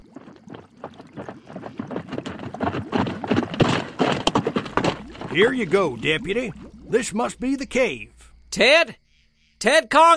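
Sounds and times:
horses clip-clopping as miners ride up to a mountain cave: 0:00.0 - 0:06.7
speech: 0:05.4 - 0:09.0, 0:09.6 - 0:10.1.

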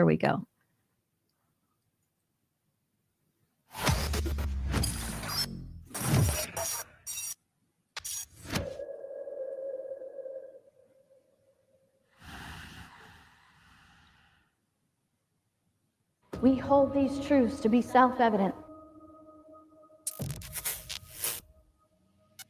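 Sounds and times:
speech: 0:00.0 - 0:00.5, 0:16.4 - 0:18.6
film trailer for a new film playing: 0:03.6 - 0:07.4, 0:08.0 - 0:13.6, 0:14.4 - 0:22.4
sustained sonar-like pinging tone: 0:08.6 - 0:11.9, 0:16.4 - 0:20.2.

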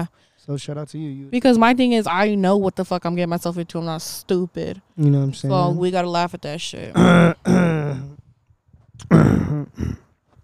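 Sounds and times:
speech: 0:00.0 - 0:08.1, 0:09.0 - 0:10.0
throat clearing: 0:07.0 - 0:08.2, 0:09.0 - 0:10.1.

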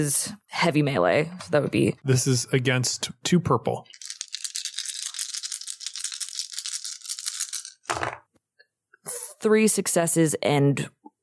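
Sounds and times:
speech: 0:00.0 - 0:04.0, 0:09.4 - 0:11.1
dice rattling: 0:03.9 - 0:08.3.

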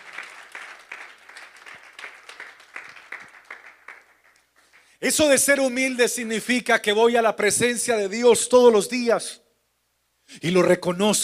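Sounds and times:
audience applause: 0:00.0 - 0:04.9
speech: 0:05.0 - 0:09.4, 0:10.4 - 0:11.2.

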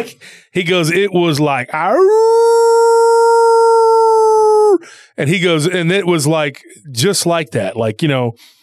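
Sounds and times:
speech: 0:00.0 - 0:02.8, 0:05.2 - 0:08.6
voice imitating a werewolf howl: 0:01.8 - 0:04.8.

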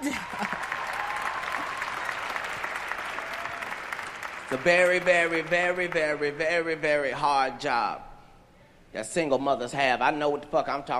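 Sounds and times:
crowd clapping: 0:00.0 - 0:07.0
speech: 0:04.5 - 0:08.1, 0:08.9 - 0:10.9.

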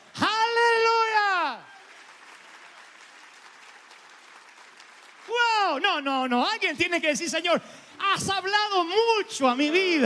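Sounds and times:
audience applause: 0:00.9 - 0:05.8
speech: 0:05.8 - 0:10.0.

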